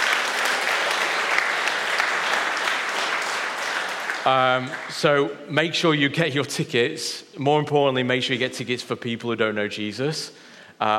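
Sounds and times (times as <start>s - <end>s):
audience round of applause: 0.0s - 5.3s
speech: 4.2s - 10.9s.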